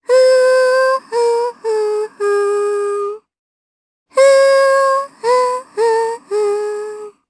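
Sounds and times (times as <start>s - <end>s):
Japanese voice humming: 0.0s - 3.3s, 4.2s - 7.2s.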